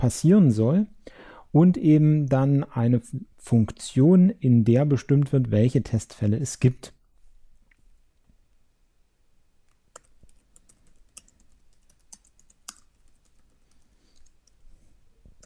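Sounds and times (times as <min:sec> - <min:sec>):
speech: 0:00.0 - 0:07.0
code being typed on a computer keyboard: 0:09.9 - 0:14.6.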